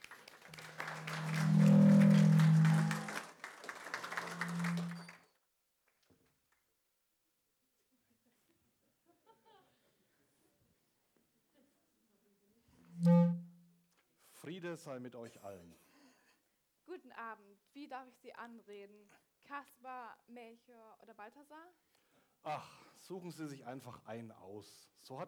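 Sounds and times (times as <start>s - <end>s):
audience applause: 0.0s - 5.2s
speech: 14.5s - 15.9s, 17.0s - 21.8s, 22.4s - 25.2s.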